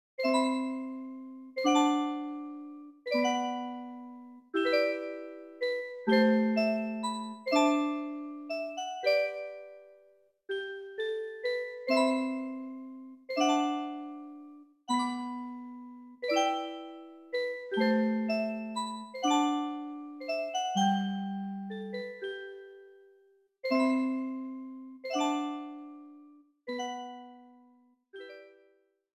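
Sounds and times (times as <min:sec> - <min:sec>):
lullaby music: 0:00.2 - 0:28.9.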